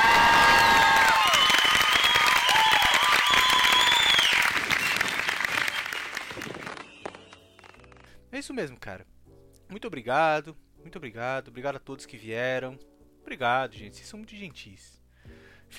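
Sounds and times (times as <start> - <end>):
whoops and whistled cheers: 0.0 - 7.5
audience applause: 0.0 - 8.0
speech: 8.5 - 15.7.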